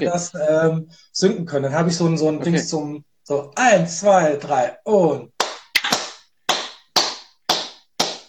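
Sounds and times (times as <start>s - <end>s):
speech: 0.0s - 5.3s
hand clap to sync recordings: 5.4s - 8.2s.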